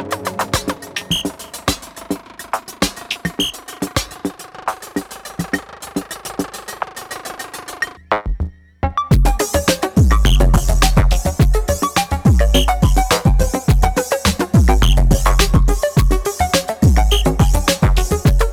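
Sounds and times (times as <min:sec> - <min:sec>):
instrumental music: 0:00.0 - 0:04.4, 0:08.2 - 0:18.5.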